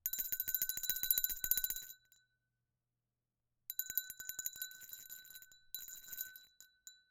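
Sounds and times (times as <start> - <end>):
bell: 0.0 - 2.3, 3.7 - 7.0.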